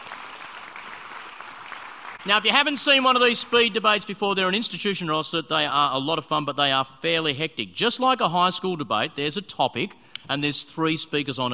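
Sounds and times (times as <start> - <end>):
audience applause: 0.0 - 3.8
speech: 2.2 - 11.5.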